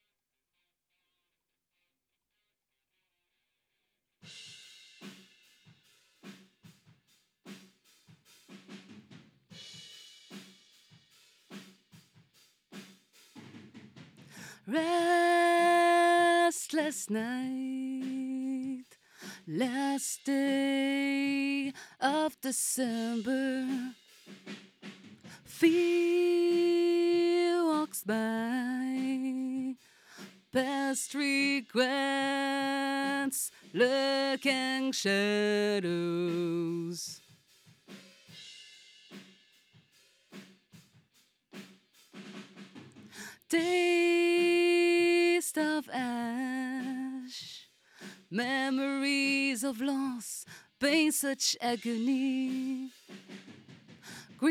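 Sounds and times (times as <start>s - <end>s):
vocals: 14.3s - 24.3s, 25.2s - 37.3s, 43.1s - 53.3s, 54.0s - 54.4s.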